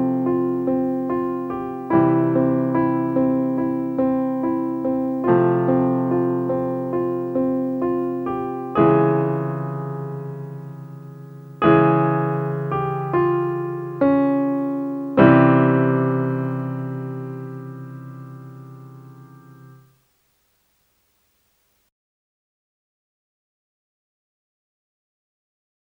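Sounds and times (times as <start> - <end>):
solo piano: 0.0 - 20.0.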